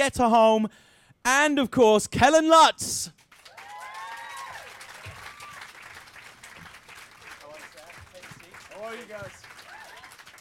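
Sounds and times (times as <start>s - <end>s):
speech: 0.0s - 3.2s, 8.9s - 9.4s
crowd applauding loudly: 3.2s - 10.3s
high whoops and screams: 3.5s - 5.7s, 9.6s - 10.2s.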